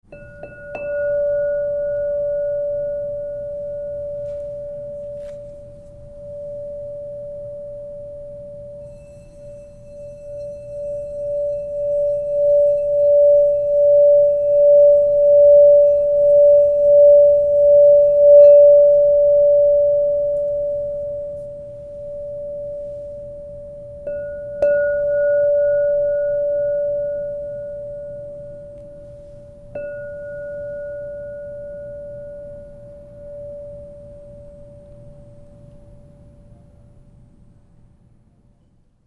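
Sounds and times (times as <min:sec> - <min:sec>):
crystal singing bowls ringing: 0:00.0 - 0:36.6.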